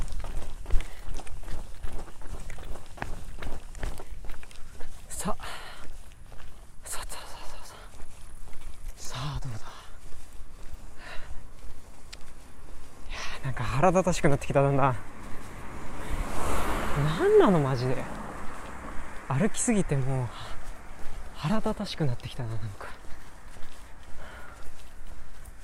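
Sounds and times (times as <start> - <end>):
footsteps of a person jogging lightly: 0.0 - 25.6
speech: 13.8 - 15.1, 17.0 - 18.2, 19.3 - 20.5, 21.4 - 22.9.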